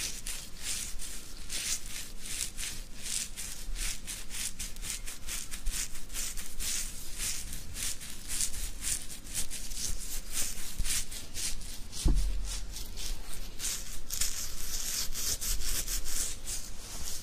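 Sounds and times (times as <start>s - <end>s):
beard scratching: 0.0s - 17.2s
low rumbling bump: 12.0s - 12.8s.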